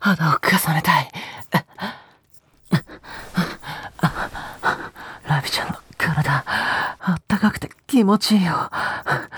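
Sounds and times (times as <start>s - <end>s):
speech: 0.0s - 1.0s, 8.0s - 9.2s
soft airy breaths blowing against the ear: 2.6s - 7.0s.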